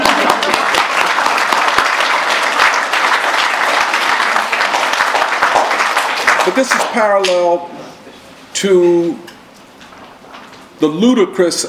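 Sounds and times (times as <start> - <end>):
audience clapping: 0.0 - 7.6
speech: 6.5 - 7.9, 8.6 - 9.3, 10.8 - 11.6.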